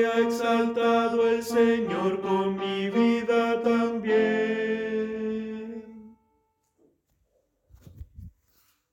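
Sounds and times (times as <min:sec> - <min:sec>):
tenor singing: 0:00.0 - 0:06.3.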